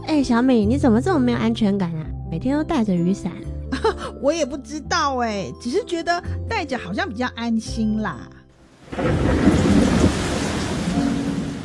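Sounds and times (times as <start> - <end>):
speech: 0.1 - 9.6
heavy rain: 8.6 - 11.6
deep rolling rumble of thunder: 8.8 - 11.6.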